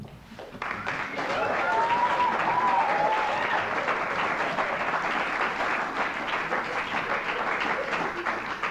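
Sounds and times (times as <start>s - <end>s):
loud applause from live audience: 0.3s - 8.6s
scattered cheers: 0.8s - 4.2s.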